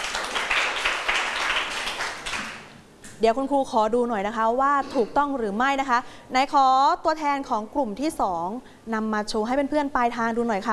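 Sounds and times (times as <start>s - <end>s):
students clapping: 0.0s - 2.8s
speech: 3.2s - 10.7s.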